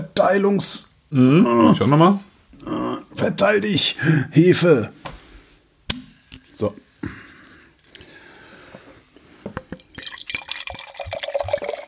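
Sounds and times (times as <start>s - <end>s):
speech: 0.2s - 5.0s, 6.6s - 6.8s
cider being poured into a glass: 9.8s - 11.8s.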